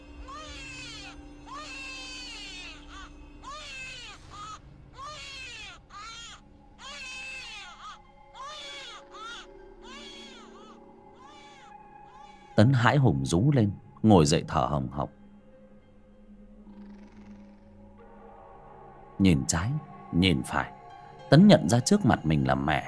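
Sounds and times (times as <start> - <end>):
newborn baby crying shrilly: 0.0 - 12.6
speech: 12.6 - 15.2, 19.2 - 22.8.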